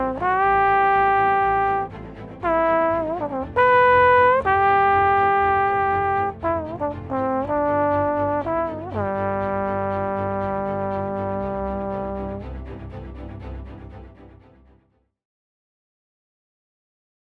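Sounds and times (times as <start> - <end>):
horn test: 0.0 - 12.5.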